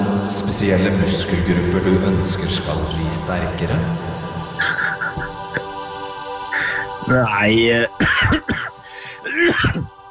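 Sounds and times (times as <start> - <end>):
speech: 0.3 - 5.0, 7.1 - 8.5
cough: 8.0 - 10.0.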